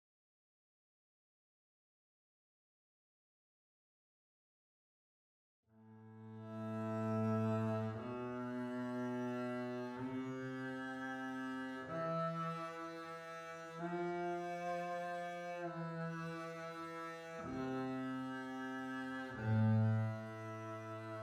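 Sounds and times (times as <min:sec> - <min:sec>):
double bass: 0:06.4 - 0:21.2.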